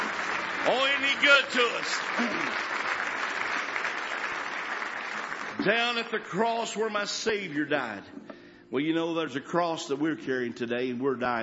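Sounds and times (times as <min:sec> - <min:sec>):
crowd clapping hands in praise: 0:00.0 - 0:06.8
speech: 0:00.6 - 0:02.9, 0:05.6 - 0:11.4.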